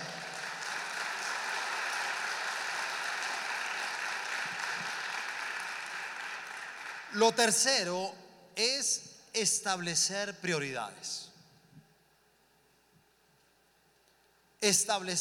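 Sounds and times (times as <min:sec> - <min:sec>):
audience applause: 0:00.0 - 0:07.2
speech: 0:07.1 - 0:11.3, 0:14.6 - 0:15.1.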